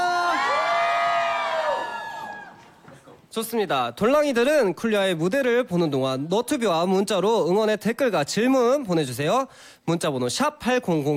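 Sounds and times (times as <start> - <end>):
live show audience screaming and whooping on request: 0.0 - 2.8
speech: 3.4 - 11.1.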